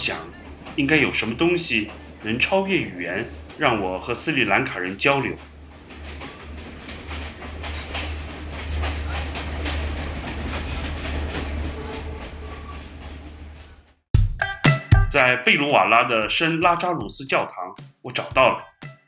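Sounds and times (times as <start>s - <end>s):
speech: 0.0s - 5.5s, 15.1s - 18.7s
train wheels clacking on rails in Sri Lanka: 0.0s - 14.0s.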